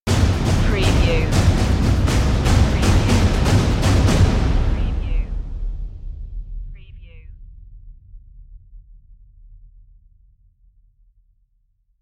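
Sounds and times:
percussion stinger: 0:00.1 - 0:06.7.

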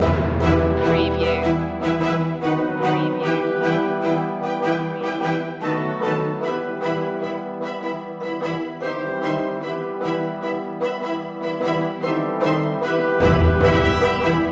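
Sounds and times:
atmospheric music loop: 0:00.0 - 0:14.4.

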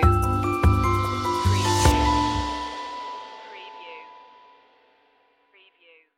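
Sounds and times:
music stinger: 0:00.1 - 0:05.3.

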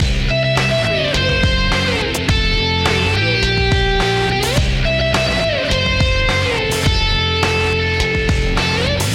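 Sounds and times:
wind grunge loop: 0:00.0 - 0:09.1.

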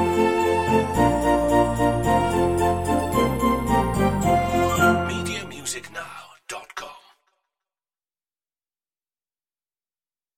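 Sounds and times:
Christmas song: 0:00.0 - 0:07.2.

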